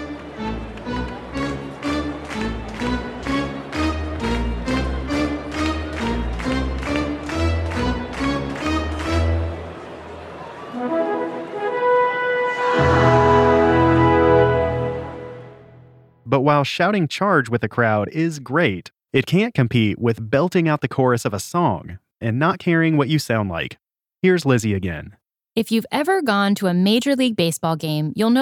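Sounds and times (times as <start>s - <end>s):
stadium organ playing a fanfare at Dodger Stadium: 0.0s - 16.0s
speech: 16.4s - 28.4s.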